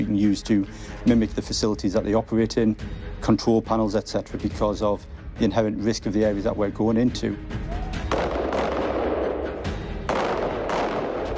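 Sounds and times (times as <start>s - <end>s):
speech: 0.0s - 7.8s
gunshots during police firearms training: 8.1s - 11.3s.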